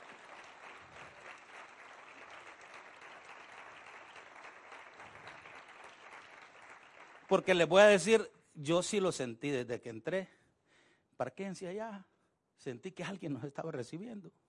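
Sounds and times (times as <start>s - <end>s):
audience applause: 0.0s - 7.6s
speech: 7.3s - 10.4s, 11.2s - 14.4s.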